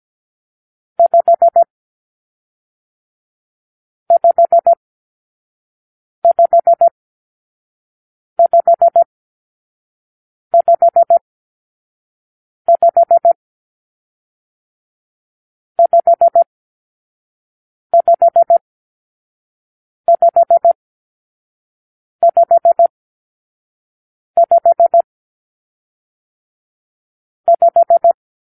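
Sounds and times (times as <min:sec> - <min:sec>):
morse code for numeral five: 0:01.0 - 0:01.7, 0:04.1 - 0:04.8, 0:06.2 - 0:06.9, 0:08.4 - 0:09.1, 0:10.6 - 0:11.2, 0:12.7 - 0:13.4, 0:15.8 - 0:16.5, 0:18.0 - 0:18.6, 0:20.1 - 0:20.8, 0:22.2 - 0:22.9, 0:24.4 - 0:25.1, 0:27.5 - 0:28.2.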